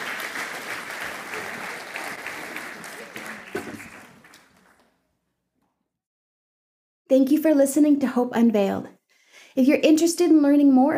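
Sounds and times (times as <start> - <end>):
audience applause: 0.0 - 5.1
speech: 7.1 - 9.0, 9.6 - 10.9.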